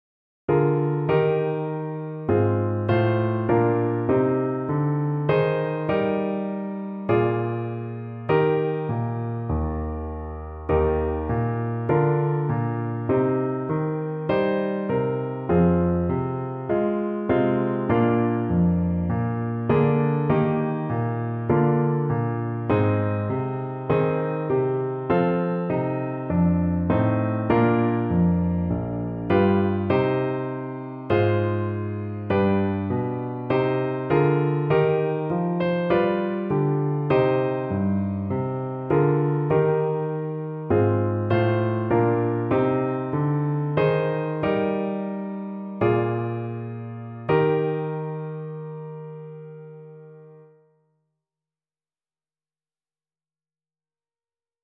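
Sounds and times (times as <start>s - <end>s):
piano piece: 0.5s - 50.8s.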